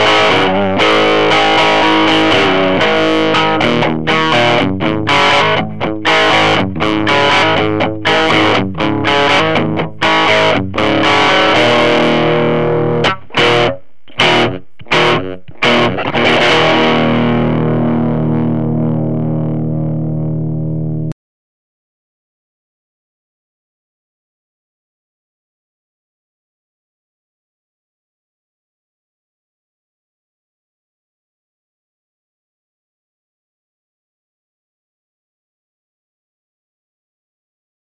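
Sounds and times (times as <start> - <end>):
electric guitar through a tweed amp with gain and volume at 7: 0.0 - 21.2.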